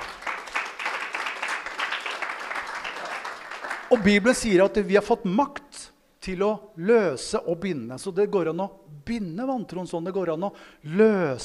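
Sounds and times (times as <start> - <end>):
audience applause: 0.0 - 4.2
speech: 3.9 - 5.6, 6.3 - 11.4.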